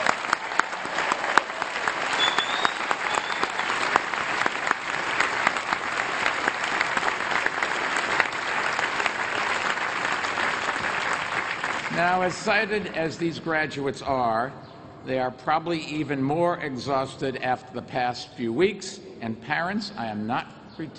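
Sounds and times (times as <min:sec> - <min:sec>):
audience applause for the class of 2014: 0:00.0 - 0:12.7
speech: 0:12.0 - 0:20.9.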